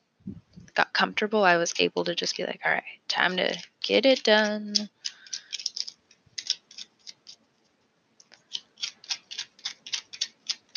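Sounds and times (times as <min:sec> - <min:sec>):
speech: 0:00.8 - 0:05.0
tarot cards being shuffled: 0:03.2 - 0:07.4, 0:08.3 - 0:10.7.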